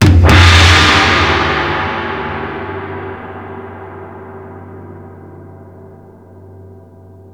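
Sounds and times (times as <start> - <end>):
taiko drums: 0.0 - 3.5.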